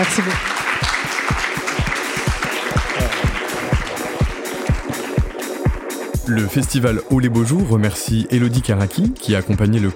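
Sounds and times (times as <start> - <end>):
speech: 0.0 - 0.5, 6.3 - 9.9
audience applause: 0.0 - 5.8.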